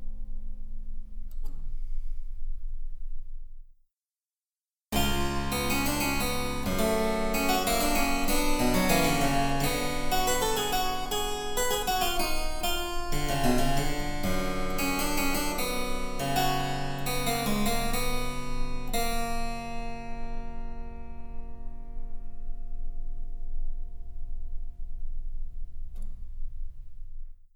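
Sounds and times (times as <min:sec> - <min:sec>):
harpsichord: 0:05.0 - 0:20.4.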